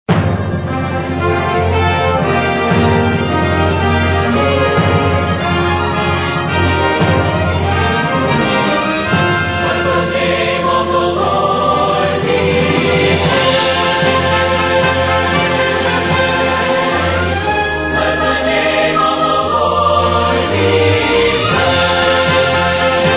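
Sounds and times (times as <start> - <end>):
orchestra playing: 0.1 - 23.1
singers: 8.1 - 23.1.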